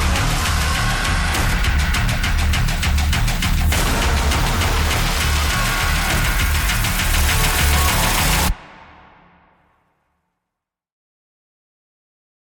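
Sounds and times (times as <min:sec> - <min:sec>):
horror film score with escalating intensity: 0:00.0 - 0:09.6.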